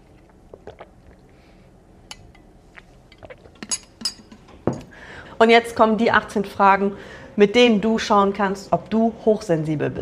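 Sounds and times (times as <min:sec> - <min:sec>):
sipping a drink: 0:00.0 - 0:04.4
speech: 0:00.7 - 0:01.0, 0:05.4 - 0:10.0.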